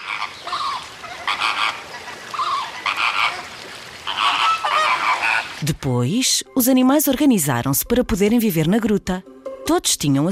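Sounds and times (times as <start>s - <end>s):
flamingos calling: 0.0s - 5.6s
speech: 5.6s - 10.2s.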